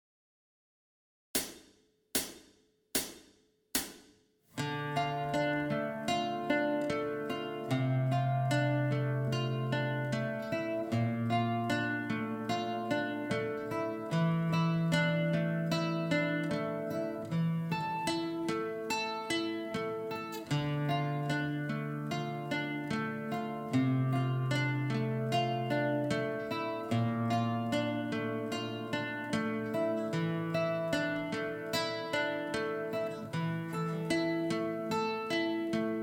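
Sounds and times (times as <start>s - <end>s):
75 BPM intro guitar backing track: 4.6s - 36.0s.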